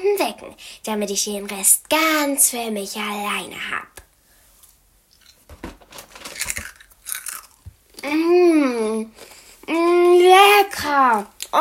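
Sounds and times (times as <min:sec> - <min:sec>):
speech: 0:00.2 - 0:04.0, 0:08.0 - 0:11.5
chocolate cornflakes crunching as bitten and chewed: 0:05.2 - 0:07.7.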